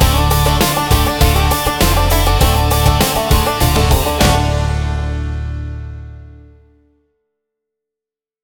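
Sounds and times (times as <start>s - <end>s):
bluegrass music: 0.0s - 6.5s.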